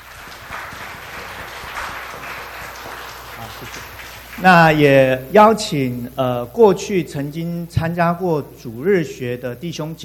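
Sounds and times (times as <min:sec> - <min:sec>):
crowd applauding: 0:00.0 - 0:05.2
speech: 0:03.6 - 0:10.0.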